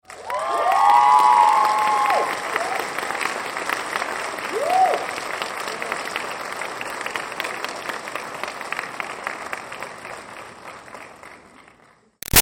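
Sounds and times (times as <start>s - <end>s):
crowd cheering: 0.0s - 7.8s
audience applause at a graduation: 0.0s - 12.1s.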